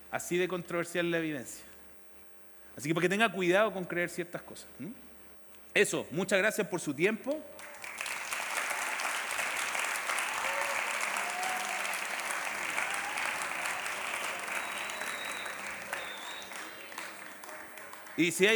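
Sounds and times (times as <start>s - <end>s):
speech: 0.1s - 1.7s, 2.8s - 5.0s, 5.8s - 7.6s, 18.2s - 18.5s
audience applause: 7.6s - 18.5s
faint whistles: 14.2s - 17.2s.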